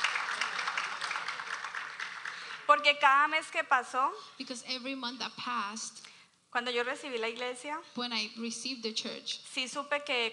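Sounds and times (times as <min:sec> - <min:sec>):
audience clapping: 0:00.0 - 0:02.9
speech: 0:02.7 - 0:10.3.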